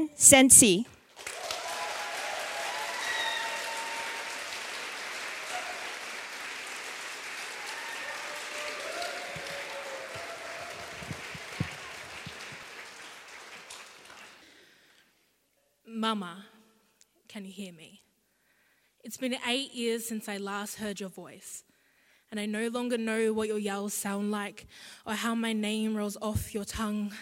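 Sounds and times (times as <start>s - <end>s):
speech: 0.0s - 0.9s, 17.4s - 18.0s, 19.1s - 21.7s, 22.3s - 27.1s
audience applause: 1.1s - 14.7s.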